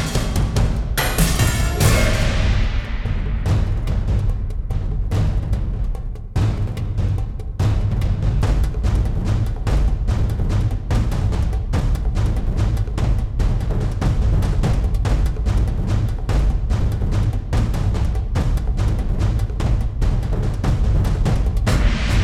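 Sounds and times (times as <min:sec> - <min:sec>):
march percussion: 0:00.0 - 0:22.2.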